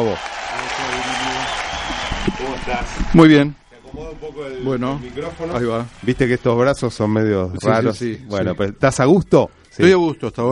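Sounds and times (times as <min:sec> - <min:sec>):
speech: 0:00.0 - 0:01.1, 0:02.3 - 0:10.5
studio audience applause: 0:00.0 - 0:07.0.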